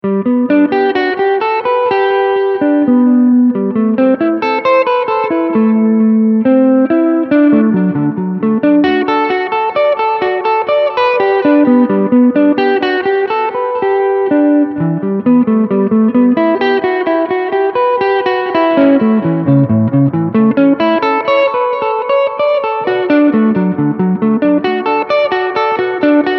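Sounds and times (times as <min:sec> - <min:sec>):
arpeggios in fifth position: 0:00.0 - 0:26.3.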